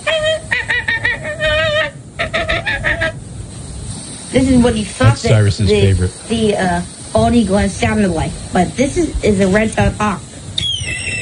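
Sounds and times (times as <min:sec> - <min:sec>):
American flamingo honking call: 0:00.0 - 0:03.2
speech: 0:04.4 - 0:10.3.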